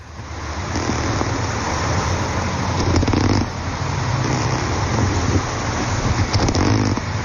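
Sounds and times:
seals underwater: 0.6 - 1.7, 2.8 - 3.6, 4.2 - 7.1.

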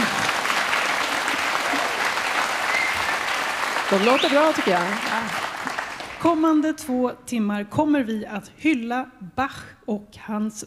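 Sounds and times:
audience applause: 0.0 - 6.3
speech: 3.9 - 5.4, 6.2 - 10.6.

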